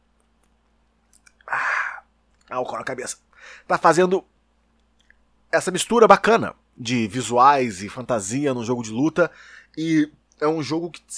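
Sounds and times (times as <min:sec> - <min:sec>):
wet mouth clicks: 0:00.4 - 0:02.5
speech: 0:02.5 - 0:04.3, 0:05.5 - 0:11.1.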